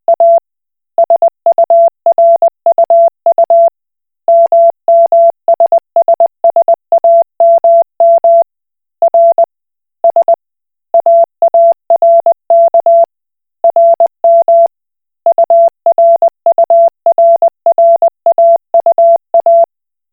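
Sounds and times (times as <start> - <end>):
Koch Morse code beeps: 1.0 - 3.7, 4.3 - 8.4, 9.0 - 9.4, 11.0 - 13.1, 13.7 - 14.7, 15.3 - 19.7.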